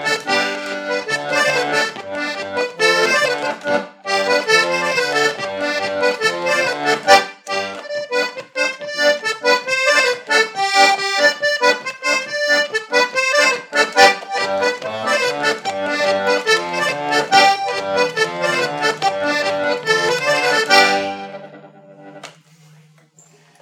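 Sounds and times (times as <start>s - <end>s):
polka music: 0.0s - 22.4s.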